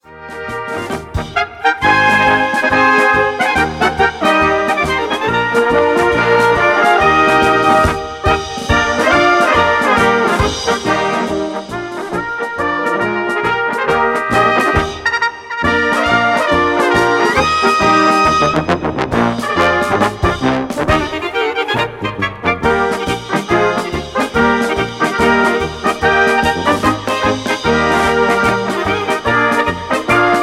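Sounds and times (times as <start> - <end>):
brass band playing: 0.0 - 30.4.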